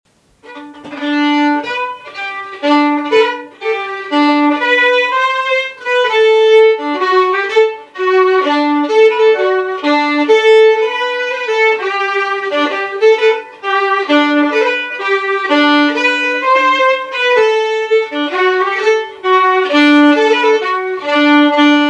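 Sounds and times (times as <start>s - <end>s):
waltz music: 0.5s - 21.8s.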